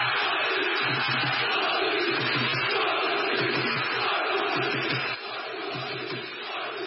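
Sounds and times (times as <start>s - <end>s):
Sporting football fans shouting: 0.0s - 6.8s.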